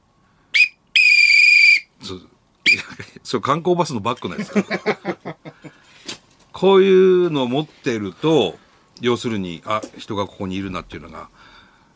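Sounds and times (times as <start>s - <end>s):
emergency whistle blasts: 0.6s - 1.9s
speech: 2.1s - 2.3s, 3.3s - 5.4s, 6.6s - 11.5s
laughter: 4.4s - 5.7s.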